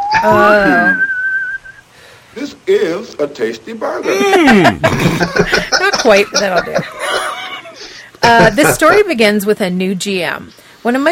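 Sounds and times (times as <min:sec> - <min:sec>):
voice-like hum: 0:00.0 - 0:01.1, 0:08.2 - 0:09.0
whistled imitation of a theremin: 0:00.0 - 0:01.8
speech: 0:00.2 - 0:01.0, 0:02.4 - 0:07.2, 0:08.2 - 0:11.1
laughter: 0:04.0 - 0:09.1.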